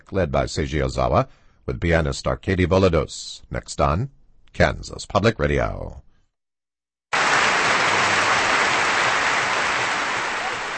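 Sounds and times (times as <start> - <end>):
speech: 0.1 - 6.1
audience applause after orchestral concert: 7.1 - 10.7.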